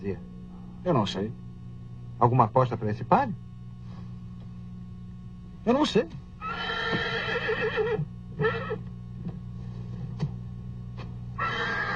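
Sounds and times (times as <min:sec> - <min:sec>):
speech: 0:00.0 - 0:01.4, 0:02.2 - 0:03.5, 0:05.6 - 0:06.2
racehorse neighing: 0:06.4 - 0:08.8, 0:11.4 - 0:11.9.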